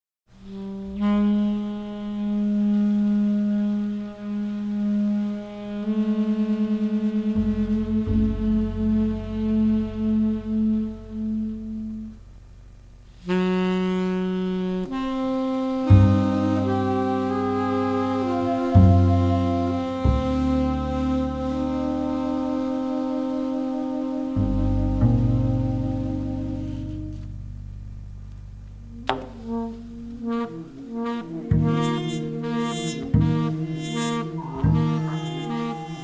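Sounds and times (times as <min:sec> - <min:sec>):
improvised music: 0:00.4 - 0:12.4, 0:13.1 - 0:36.0.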